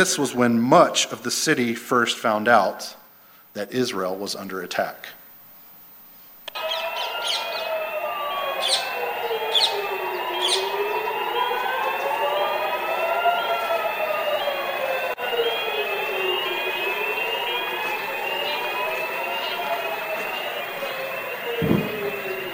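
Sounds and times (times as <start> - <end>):
rocket warning sirens wailing: 0.0 - 1.2, 6.5 - 22.5
speech: 0.0 - 3.0, 3.6 - 5.2
sharp chirps: 16.4 - 22.5
distant explosion boom: 21.6 - 22.5.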